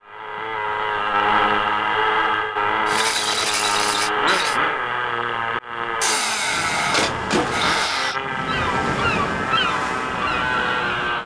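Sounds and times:
go-kart engines: 0.1s - 11.2s.

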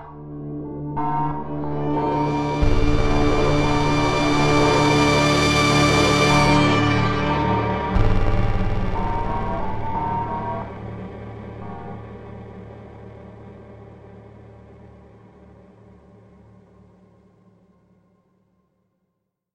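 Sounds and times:
game over scene music: 1.0s - 10.7s.

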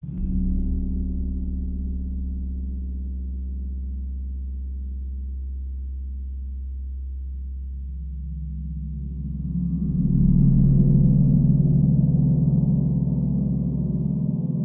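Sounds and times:
sinister gong: 0.0s - 5.1s, 8.4s - 14.5s.

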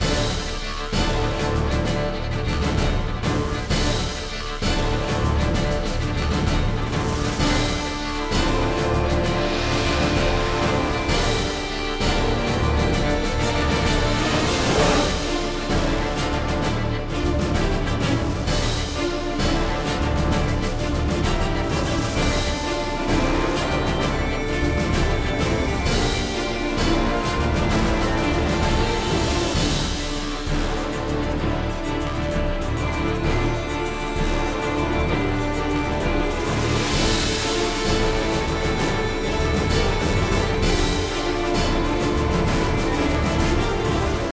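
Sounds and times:
bagpipe boss battle music: 0.0s - 44.3s.

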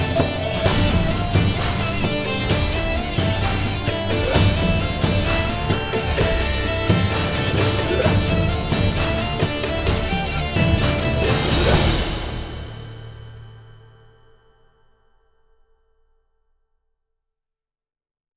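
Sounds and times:
tavern brawl: 0.0s - 13.7s.

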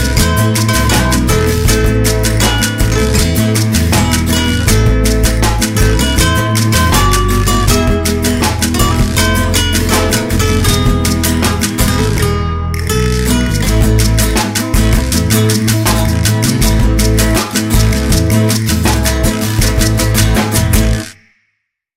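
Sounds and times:
string sound from a game: 0.0s - 21.1s.

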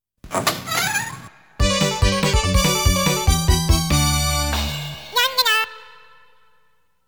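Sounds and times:
congratulatory fanfare: 1.6s - 5.7s.

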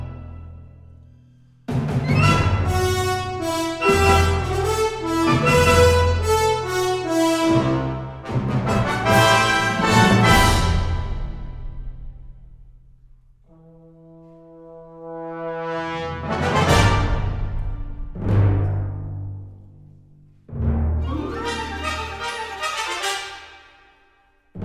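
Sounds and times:
medium battle music layer: 1.7s - 12.1s, 15.5s - 18.8s, 20.5s - 24.0s.

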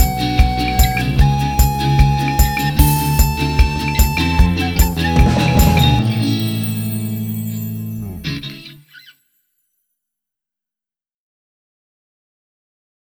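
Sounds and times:
soprano recorder: 0.0s - 6.8s.

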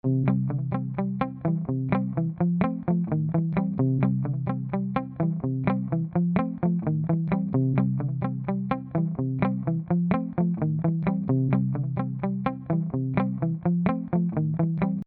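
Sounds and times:
guitar: 0.0s - 15.0s.

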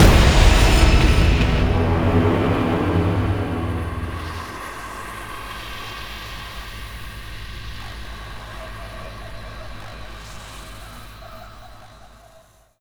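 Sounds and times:
ambient music: 0.0s - 5.4s.

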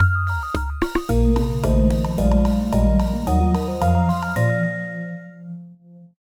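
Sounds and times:
room unlocked jingle: 1.1s - 5.6s.

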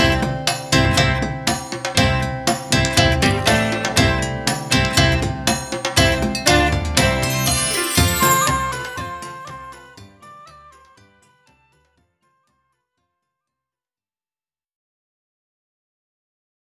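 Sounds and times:
polka music: 0.0s - 10.8s.

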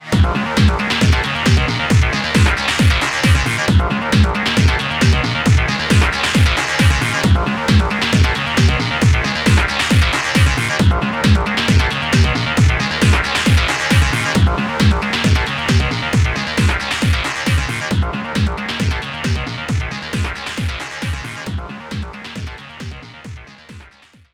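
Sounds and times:
continue screen background music: 0.0s - 24.3s.

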